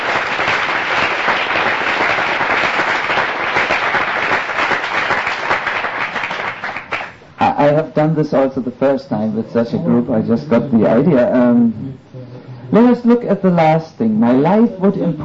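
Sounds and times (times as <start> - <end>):
crowd applause: 0.0 - 7.2
speech: 8.0 - 12.0, 12.7 - 15.2.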